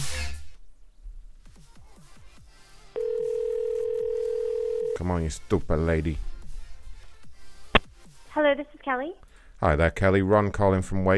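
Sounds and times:
falling telephone chirps on an outgoing call: 3.0s - 5.0s
speech: 5.0s - 6.3s, 8.5s - 11.1s.

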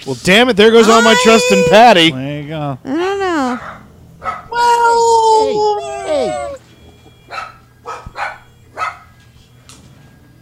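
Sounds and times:
speech: 0.0s - 6.5s
low steady hum: 1.7s - 10.4s
dogs barking at TV sirens: 3.4s - 5.1s, 5.7s - 9.2s.

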